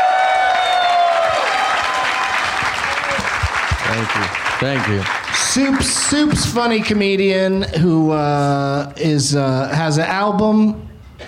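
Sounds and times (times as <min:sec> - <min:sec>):
whoops and cheers: 0:00.0 - 0:03.5
audience applause for a guest: 0:00.0 - 0:06.9
speech: 0:04.0 - 0:11.2.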